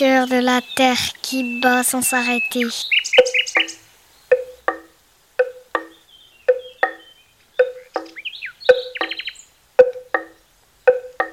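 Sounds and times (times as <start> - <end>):
speech: 0.0 - 3.0
birds singing in a forest: 0.0 - 11.3.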